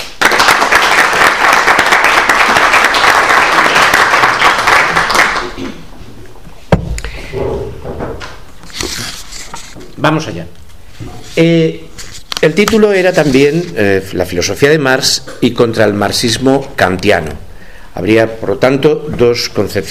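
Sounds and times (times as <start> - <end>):
welcoming applause from audience: 0.0 - 5.7
speech: 10.0 - 17.4, 18.0 - 19.8.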